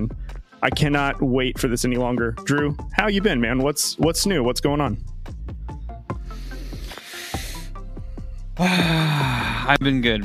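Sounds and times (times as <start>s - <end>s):
speech: 0.0s - 5.1s, 8.6s - 10.2s
deep breath: 6.2s - 9.7s.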